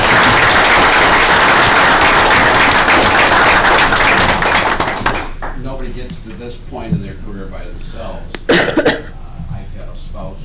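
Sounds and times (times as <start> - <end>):
audience applause: 0.0 - 5.6.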